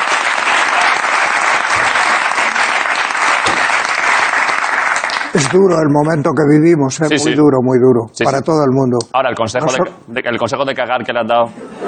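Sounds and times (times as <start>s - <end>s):
sustained audience applause: 0.0s - 5.8s
speech: 5.4s - 11.8s.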